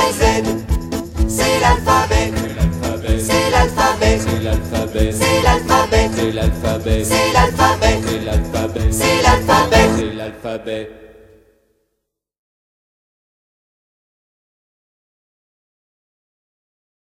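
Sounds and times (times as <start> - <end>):
French alphabet song: 0.0 - 0.6, 1.2 - 11.0.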